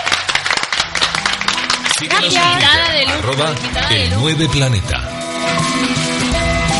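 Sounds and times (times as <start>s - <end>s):
crowd applause: 0.0s - 4.2s
speech: 2.0s - 6.6s.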